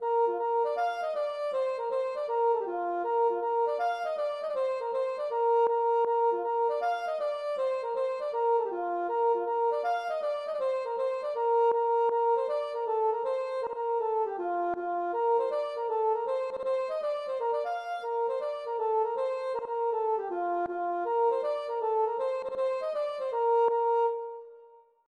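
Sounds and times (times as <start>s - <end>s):
gavotte: 0.0s - 24.9s.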